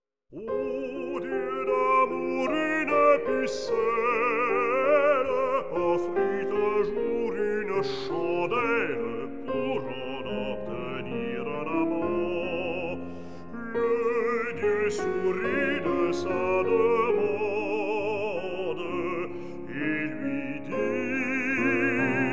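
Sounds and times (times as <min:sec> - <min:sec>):
piano: 0:00.3 - 0:22.3
person singing a song cycle: 0:00.4 - 0:22.3.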